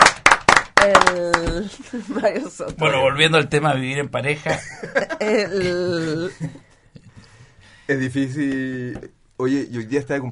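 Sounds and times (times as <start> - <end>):
audience clapping: 0.0 - 1.6
speech: 0.8 - 6.7, 7.9 - 10.2
laughter: 4.4 - 6.8.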